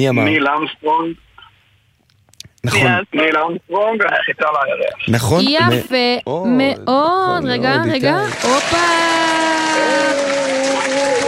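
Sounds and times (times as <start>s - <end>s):
speech: 0.0s - 1.3s, 2.6s - 11.2s
quiz show audience clapping: 7.8s - 11.2s.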